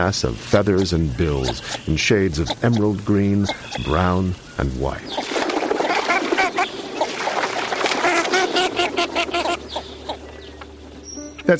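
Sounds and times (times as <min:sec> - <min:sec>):
speech: 0:00.0 - 0:05.3
northern shoveler ducks calling: 0:00.0 - 0:11.5
water splashing: 0:03.5 - 0:10.3.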